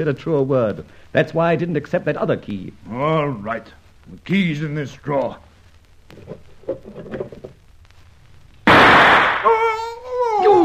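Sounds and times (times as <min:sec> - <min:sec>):
speech: 0:00.0 - 0:05.5, 0:06.1 - 0:07.5
faint shuffling and tapping: 0:05.2 - 0:08.6
loud gunshot with harsh roaring tail: 0:08.7 - 0:09.6.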